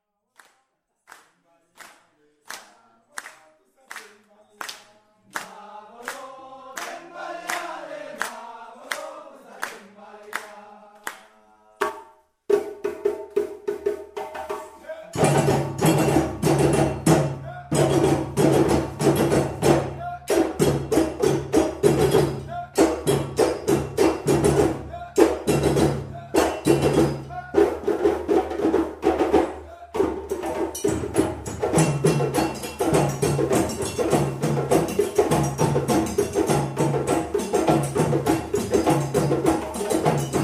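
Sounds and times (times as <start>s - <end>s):
djembe drumming at a djembe workshop: 11.8s - 40.4s.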